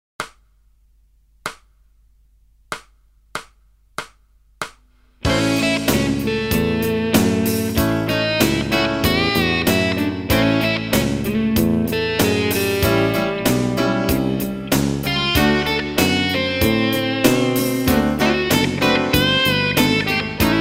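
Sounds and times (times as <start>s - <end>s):
blues guitar in A: 5.2s - 20.5s.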